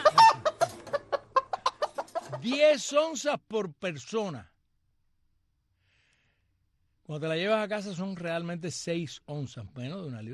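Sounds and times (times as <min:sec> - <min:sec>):
chicken clucking: 0:00.0 - 0:03.0
speech: 0:02.4 - 0:04.5, 0:07.1 - 0:10.3.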